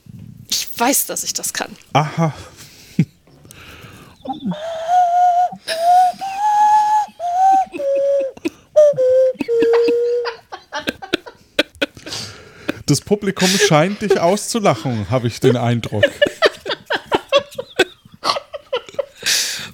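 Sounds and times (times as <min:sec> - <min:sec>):
speech: 0:00.8 - 0:02.6, 0:12.9 - 0:16.3
breathy flute melody: 0:04.0 - 0:10.4
laughter: 0:04.2 - 0:19.2.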